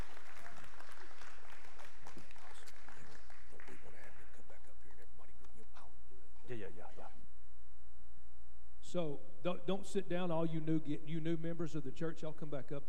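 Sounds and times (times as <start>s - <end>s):
audience applause: 0.0s - 4.0s
speech: 8.9s - 12.8s.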